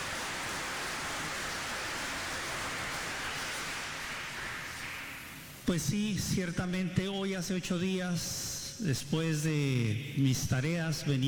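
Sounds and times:
crowd applause: 0.0s - 5.6s
speech: 5.7s - 11.2s.

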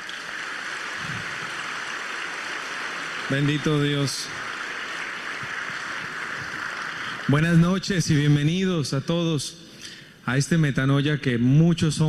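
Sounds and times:
crowd applause: 0.0s - 8.3s
speech: 3.3s - 4.4s, 7.3s - 9.6s, 10.3s - 12.0s.

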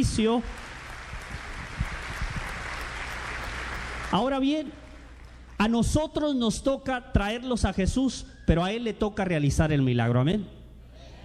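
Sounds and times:
speech: 0.0s - 0.7s, 4.1s - 4.8s, 5.6s - 10.6s
audience applause in church: 0.0s - 5.6s.

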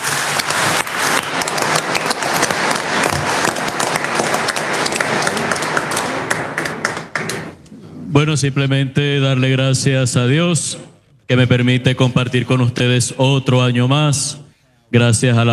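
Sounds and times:
audience applause: 0.0s - 7.6s
speech: 8.2s - 15.5s.

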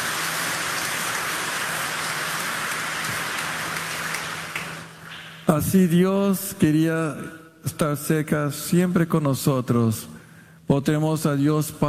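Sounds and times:
audience applause: 0.0s - 5.4s
speech: 5.5s - 11.8s.

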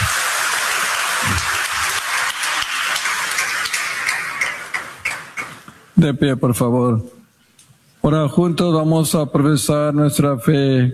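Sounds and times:
audience applause: 0.0s - 5.7s
speech: 6.0s - 7.2s, 8.0s - 10.9s.

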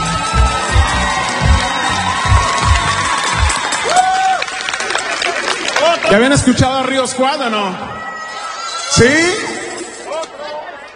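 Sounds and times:
rhythmic low thumping: 0.0s - 3.7s
crowd applause and cheering at a religious worship gathering: 0.0s - 10.2s
speech: 6.1s - 8.0s, 8.9s - 9.5s.

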